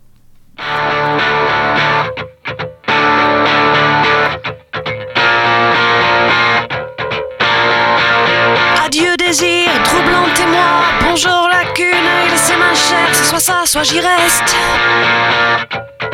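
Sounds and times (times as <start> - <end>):
heavily distorted electric guitar music with full band: 0.0 - 16.1
speech: 11.2 - 15.8.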